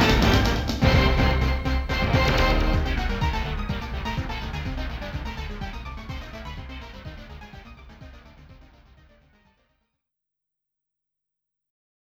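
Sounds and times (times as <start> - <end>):
game background music: 0.0 - 9.3.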